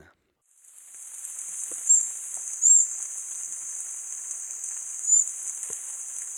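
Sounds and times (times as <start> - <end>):
Scarlet-breasted Fruiteater giving high thin whistled notes in Ecuador: 1.2 - 6.3.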